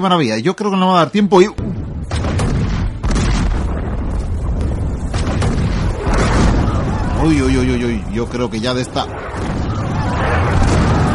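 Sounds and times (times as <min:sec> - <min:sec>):
speech: 0:00.0 - 0:02.2, 0:07.2 - 0:09.5
ship's cannons firing: 0:01.6 - 0:08.4, 0:09.1 - 0:11.1.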